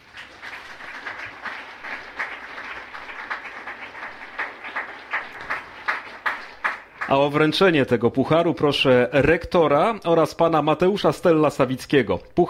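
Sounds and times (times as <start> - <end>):
audience applause: 0.0 - 7.4
speech: 7.1 - 12.4.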